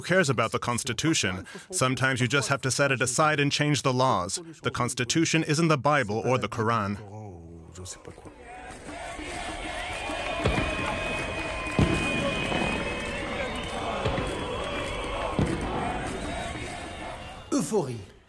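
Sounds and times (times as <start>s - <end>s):
speech: 0.0s - 7.2s, 7.8s - 8.4s, 17.6s - 18.1s
celebrating crowd cheering: 8.4s - 18.2s
horns honking: 8.5s - 18.2s
applause: 9.2s - 17.4s.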